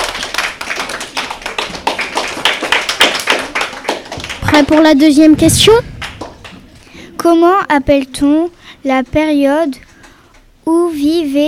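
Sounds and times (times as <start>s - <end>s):
audience applause: 0.0s - 5.1s, 5.8s - 6.9s
speech: 4.6s - 6.0s, 7.2s - 9.8s, 10.6s - 11.4s.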